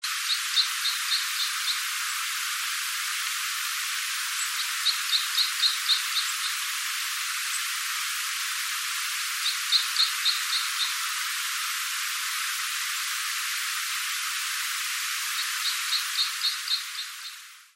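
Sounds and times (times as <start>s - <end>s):
steady hiss: 0.0s - 17.7s
red crossbill calls: 0.1s - 2.3s, 4.3s - 6.8s, 9.4s - 11.2s, 15.3s - 17.5s.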